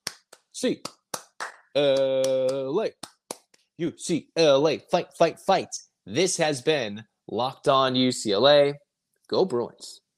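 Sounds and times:
rhythmic clapping: 0:00.0 - 0:03.6
speech: 0:00.6 - 0:01.0, 0:01.8 - 0:03.1, 0:03.8 - 0:10.0.

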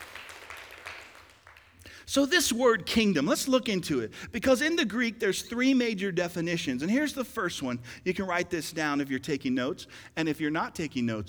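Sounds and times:
audience applause: 0:00.0 - 0:01.8
speech: 0:02.1 - 0:11.2.

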